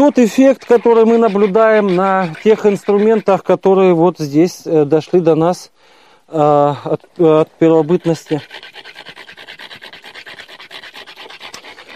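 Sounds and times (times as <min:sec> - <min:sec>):
dry stone grinding against stone: 0:00.0 - 0:03.6, 0:07.8 - 0:11.9
speech: 0:00.0 - 0:09.0.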